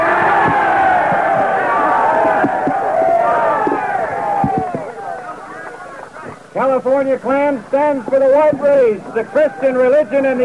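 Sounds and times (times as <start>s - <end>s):
crowd cheering: 0.0s - 7.0s, 7.8s - 10.4s
speech: 6.8s - 10.4s.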